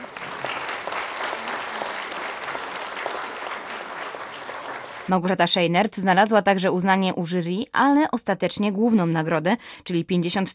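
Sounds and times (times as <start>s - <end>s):
audience applause: 0.0s - 5.1s
speech: 5.1s - 10.5s.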